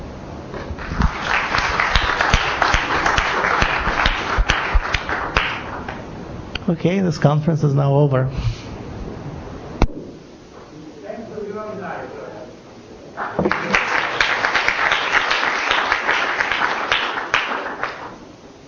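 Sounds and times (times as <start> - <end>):
conference audience applause: 0.8 - 6.0, 13.2 - 18.2
speech: 6.7 - 8.6.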